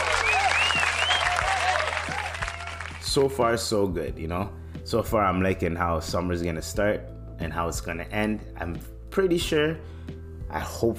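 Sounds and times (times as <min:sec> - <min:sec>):
applause: 0:00.0 - 0:03.4
speech: 0:03.1 - 0:10.9.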